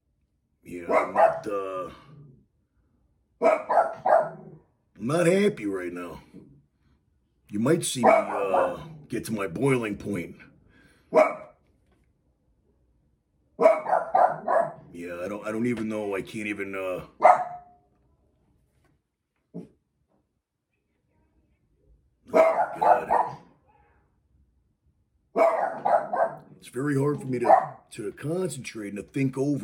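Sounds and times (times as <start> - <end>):
speech: 0.7 - 2.0, 5.0 - 6.3, 7.5 - 10.5, 11.1 - 11.4, 15.0 - 17.5, 26.6 - 29.6
dogs barking: 0.7 - 2.3, 3.4 - 4.7, 7.9 - 9.2, 11.0 - 11.6, 13.6 - 15.0, 17.1 - 17.8, 22.2 - 23.7, 25.3 - 27.9.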